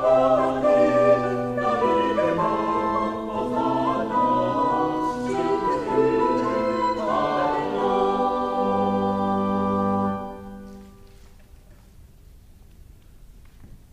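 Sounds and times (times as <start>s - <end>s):
choir singing: 0.0s - 10.9s.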